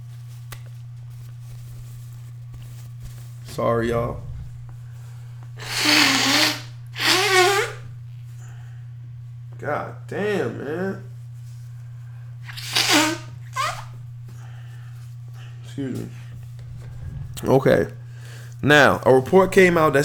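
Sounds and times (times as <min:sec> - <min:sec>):
speech: 0:03.6 - 0:04.3, 0:15.8 - 0:16.2, 0:17.4 - 0:18.0, 0:18.6 - 0:20.0
nose blowing: 0:05.6 - 0:07.9, 0:12.4 - 0:14.0, 0:16.3 - 0:18.5.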